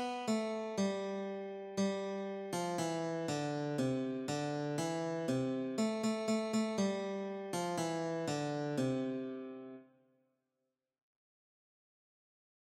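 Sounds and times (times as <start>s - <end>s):
guitar playing a Christmas carol: 0.0s - 9.8s.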